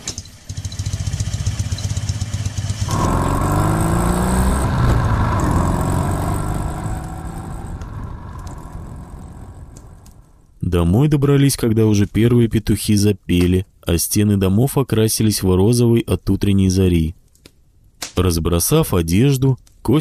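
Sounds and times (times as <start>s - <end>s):
motorcycle engine running: 0.0s - 10.4s
speech: 10.8s - 17.2s, 18.2s - 20.0s.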